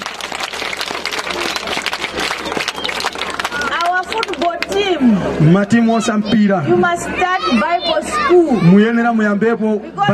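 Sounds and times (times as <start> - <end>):
people clapping: 0.0 - 4.9
speech: 5.4 - 10.1.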